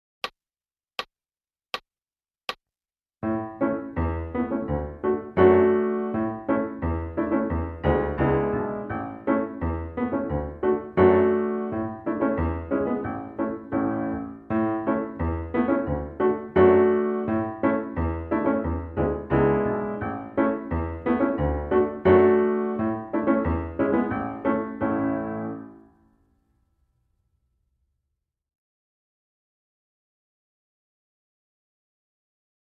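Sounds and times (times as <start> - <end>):
piano: 3.2 - 26.8.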